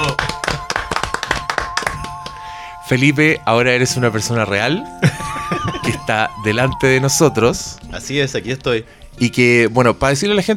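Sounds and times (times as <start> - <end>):
applause: 0.0 - 2.6
speech: 2.9 - 10.5
laughter: 5.0 - 6.6.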